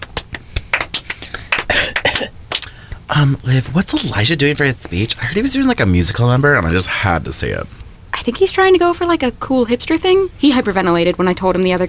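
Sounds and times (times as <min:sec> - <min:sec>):
audience applause: 0:00.0 - 0:03.2
speech: 0:02.2 - 0:02.4, 0:03.1 - 0:11.8.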